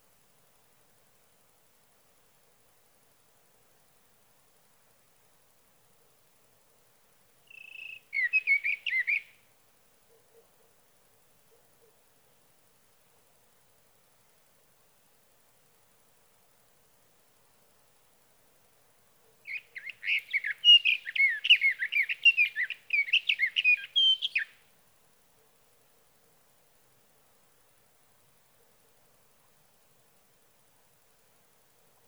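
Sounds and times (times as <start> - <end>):
Sage thrasher singing through the night: 7.5 - 9.3, 19.5 - 24.6.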